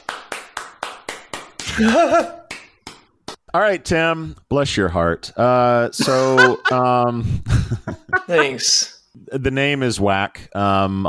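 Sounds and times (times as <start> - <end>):
golf clap: 0.0 - 1.9, 2.5 - 3.4
laughter: 1.7 - 2.5, 6.0 - 8.7
speech: 1.8 - 2.4, 3.5 - 11.0.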